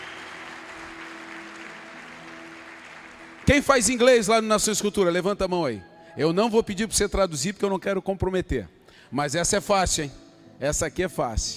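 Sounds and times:
audience applause: 0.0 - 4.0
speech: 3.5 - 11.5.

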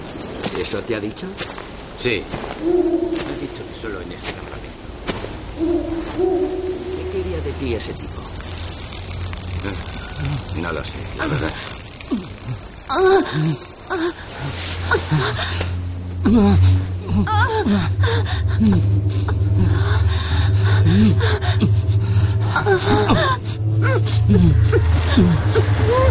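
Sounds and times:
speech: 0.6 - 4.6, 5.6 - 6.7, 7.3 - 8.2, 9.7 - 20.1, 20.9 - 21.7, 22.5 - 26.0
woman's muffled moans and gasps: 12.1 - 15.6, 16.3 - 26.0.

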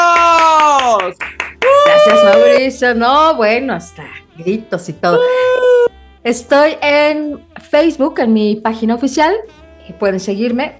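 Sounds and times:
bursts of cheering: 0.0 - 2.6
loud sustained vocal whoop: 0.0 - 2.6, 5.1 - 5.9
rhythmic studio hand clapping: 0.0 - 2.7
speech: 2.2 - 5.6, 6.2 - 10.7.

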